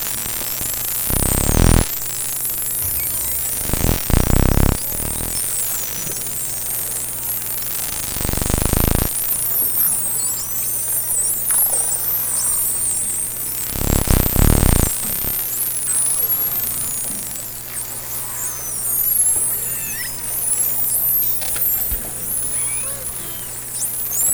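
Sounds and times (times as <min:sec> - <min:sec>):
dolphins whistling underwater: 0:02.2 - 0:24.3.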